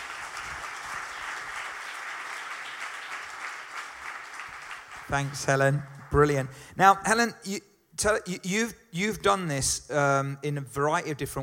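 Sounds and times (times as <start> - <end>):
church congregation clapping to welcome a guest: 0.0 - 6.6
speech: 5.1 - 11.4.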